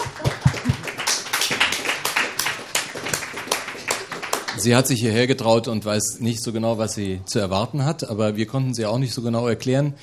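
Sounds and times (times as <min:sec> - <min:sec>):
audience applause: 0:00.0 - 0:04.7
speech: 0:04.6 - 0:10.0.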